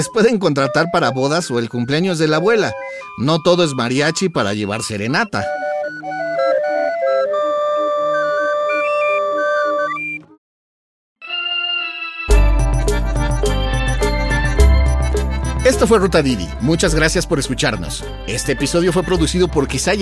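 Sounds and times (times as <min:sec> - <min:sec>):
speech: 0:00.0 - 0:06.4, 0:15.6 - 0:20.0
street barrel organ playing a reedy wheezing melody: 0:00.0 - 0:10.4, 0:11.2 - 0:20.0
thumping bass accompaniment: 0:12.3 - 0:20.0.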